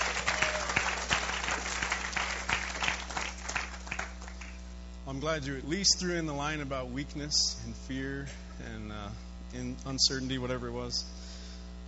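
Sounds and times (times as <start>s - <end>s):
applause: 0.0s - 4.6s
speech: 5.2s - 11.2s.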